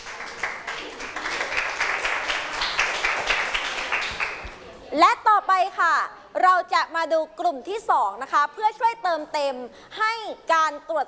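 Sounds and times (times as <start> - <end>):
classroom clapping for a group: 0.0 - 4.6
speech: 5.0 - 11.0.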